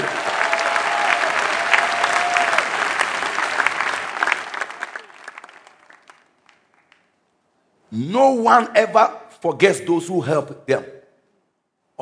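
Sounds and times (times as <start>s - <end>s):
audience clapping: 0.0s - 7.3s
speech: 8.0s - 10.9s.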